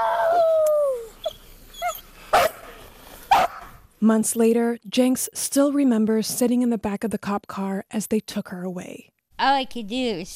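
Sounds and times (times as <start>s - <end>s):
dog attacking and biting, whining and yelping: 0.0s - 3.8s
speech: 4.0s - 10.3s.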